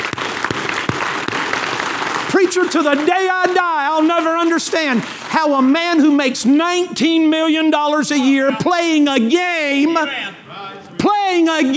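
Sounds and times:
heavy beats: 0:00.0 - 0:03.8
crowd applause: 0:00.0 - 0:06.6
speech: 0:02.4 - 0:10.3, 0:11.0 - 0:11.7.

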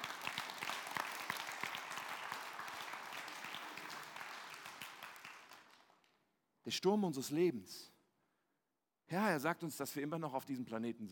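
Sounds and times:
audience applause: 0:00.0 - 0:06.0
speech: 0:06.6 - 0:07.9, 0:09.1 - 0:11.1.

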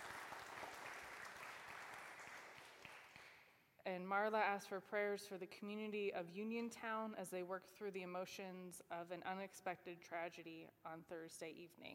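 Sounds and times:
audience applause: 0:00.0 - 0:03.2
speech: 0:03.9 - 0:11.9.

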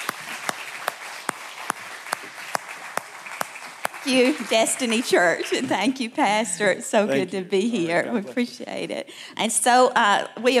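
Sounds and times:
church audience applauding to welcome a guest speaker: 0:00.0 - 0:06.0
speech: 0:04.0 - 0:10.5.

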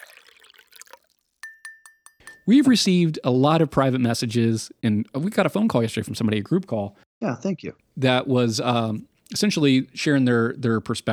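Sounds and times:
liquid being poured: 0:00.0 - 0:02.5
spoon clinking against a glass while stirring: 0:01.4 - 0:02.8
speech: 0:02.4 - 0:11.1.

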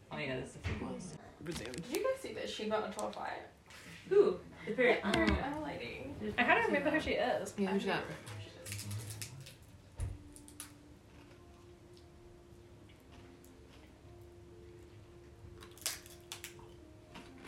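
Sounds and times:
speech: 0:00.2 - 0:08.4
crunching food while eating: 0:08.6 - 0:12.1, 0:12.8 - 0:14.2, 0:15.5 - 0:17.4.

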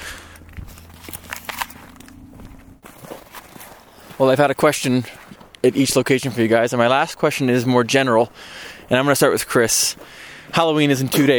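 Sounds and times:
low hum: 0:00.0 - 0:04.1
footsteps of people walking outdoors at night: 0:00.0 - 0:11.3
speech: 0:04.2 - 0:11.3.

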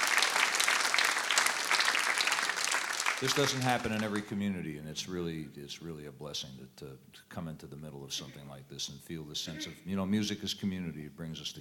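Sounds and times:
music festival audience clapping for the organisers: 0:00.0 - 0:04.4
speech: 0:03.2 - 0:11.5.

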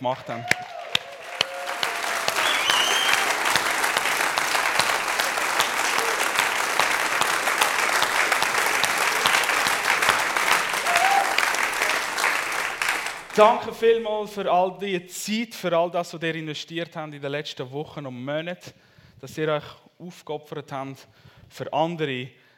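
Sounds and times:
speech: 0:00.0 - 0:00.8, 0:13.4 - 0:22.4
audience applause: 0:00.3 - 0:13.7.

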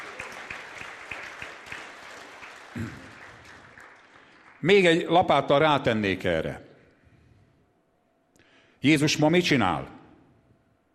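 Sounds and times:
audience applauding: 0:00.0 - 0:04.7
speech: 0:02.8 - 0:03.1, 0:04.6 - 0:06.6, 0:08.8 - 0:10.0.

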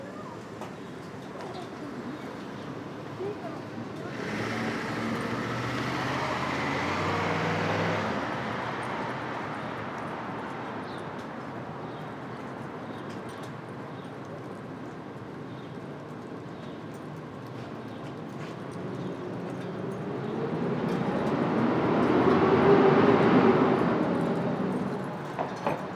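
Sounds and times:
Brooklyn street traffic rumble at dawn: 0:00.0 - 0:25.9
vehicle passing: 0:04.0 - 0:09.7, 0:19.5 - 0:25.3.

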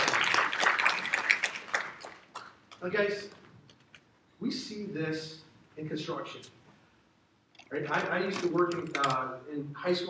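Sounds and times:
audience round of applause: 0:00.0 - 0:02.5
speech: 0:02.8 - 0:03.4, 0:04.4 - 0:06.6, 0:07.7 - 0:10.0.

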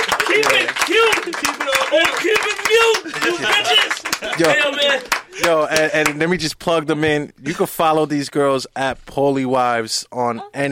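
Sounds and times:
audience applause: 0:00.0 - 0:06.2
speech: 0:00.4 - 0:10.7.

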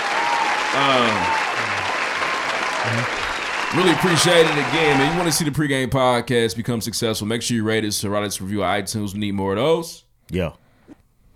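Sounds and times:
crowd clapping: 0:00.0 - 0:05.6
speech: 0:00.8 - 0:01.4, 0:02.8 - 0:11.3.

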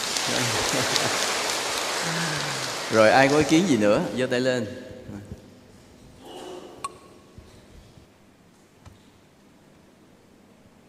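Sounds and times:
applause: 0:00.0 - 0:03.8
speech: 0:00.3 - 0:01.4, 0:02.0 - 0:05.3.

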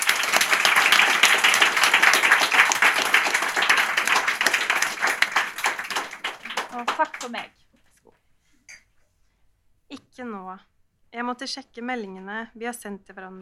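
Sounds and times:
audience applause: 0:00.0 - 0:07.5
speech: 0:06.9 - 0:07.6, 0:10.2 - 0:13.3.

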